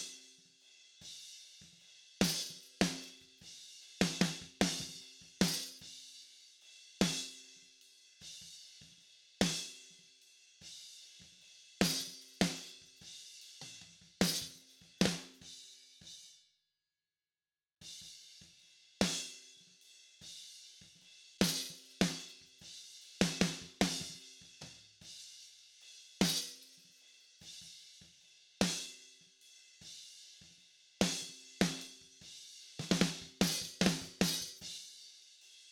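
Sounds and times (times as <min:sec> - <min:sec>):
snare drum: 0:02.2 - 0:03.2, 0:04.0 - 0:05.8, 0:11.8 - 0:12.8, 0:13.6 - 0:15.4, 0:21.4 - 0:22.4, 0:23.2 - 0:24.9, 0:26.2 - 0:26.8, 0:31.0 - 0:32.0, 0:32.8 - 0:34.7.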